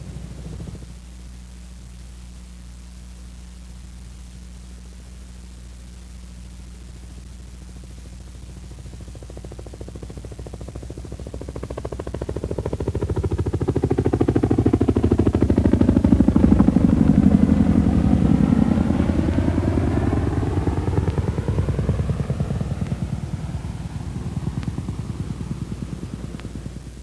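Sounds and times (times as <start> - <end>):
CH-47A Chinook tandem-rotor helicopter flying, rotor banging: 9.3 - 26.8.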